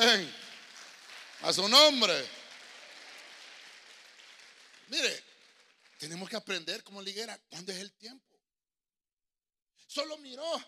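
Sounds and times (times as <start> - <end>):
speech: 0.0 - 0.4, 1.4 - 2.4, 4.9 - 5.3, 6.0 - 8.3, 9.9 - 10.6
audience clapping hands: 0.0 - 7.1.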